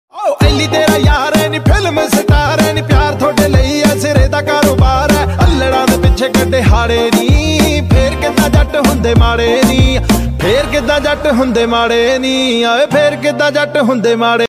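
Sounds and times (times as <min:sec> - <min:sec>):
Punjabi DJ music ringtone: 0:00.2 - 0:14.4.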